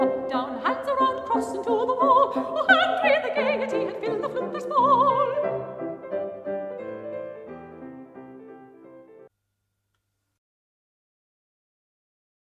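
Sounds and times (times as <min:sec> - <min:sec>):
mezzo soprano singing: 0:00.0 - 0:06.1.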